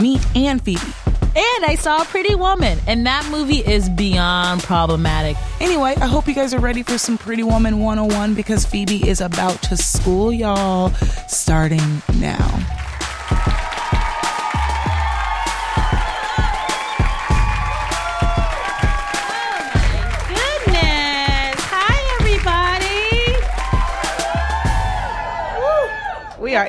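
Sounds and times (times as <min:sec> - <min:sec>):
speech: 0:00.0 - 0:12.8, 0:13.4 - 0:13.8
crowd clapping: 0:12.5 - 0:26.6
whoops and cheers: 0:13.0 - 0:21.0, 0:23.2 - 0:26.5.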